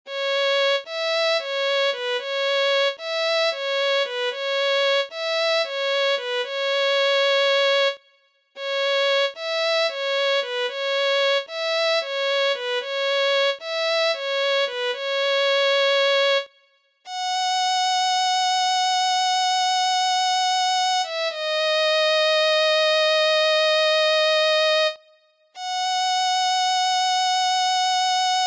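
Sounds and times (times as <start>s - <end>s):
violin: 0.1s - 8.0s, 8.6s - 28.4s.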